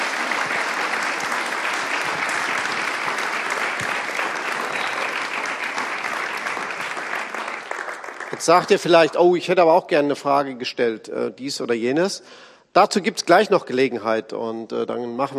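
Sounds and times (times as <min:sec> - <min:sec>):
thunderous audience applause: 0:00.0 - 0:09.2
speech: 0:08.4 - 0:15.3.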